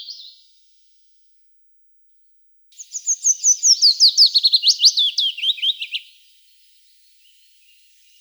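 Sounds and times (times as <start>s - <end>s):
willow warbler singing: 2.7s - 8.1s.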